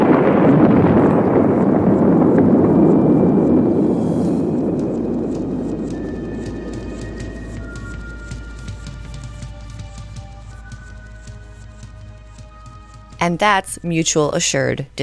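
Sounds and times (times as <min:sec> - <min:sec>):
missile launch and nuclear explosions roar: 0:00.0 - 0:08.6
speech: 0:13.3 - 0:15.0.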